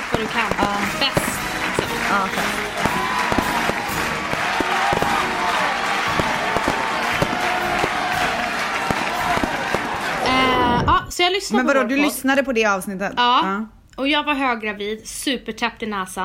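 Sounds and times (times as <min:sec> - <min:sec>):
applause sound effect: 0:00.0 - 0:10.8
people cheering: 0:00.0 - 0:11.1
speech: 0:00.2 - 0:00.8, 0:02.1 - 0:03.0, 0:11.3 - 0:16.2.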